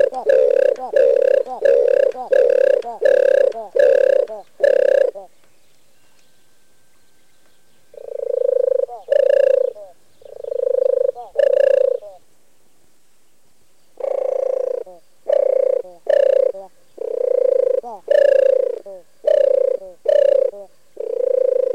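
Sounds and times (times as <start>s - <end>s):
European turtle dove giving soft throaty purrs: 0.0s - 5.3s, 7.9s - 12.2s, 14.0s - 21.7s.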